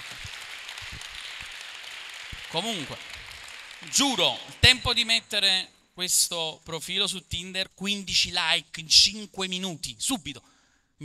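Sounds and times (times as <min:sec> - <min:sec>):
audience applause: 0:00.0 - 0:05.4
speech: 0:02.5 - 0:03.1, 0:03.8 - 0:11.0.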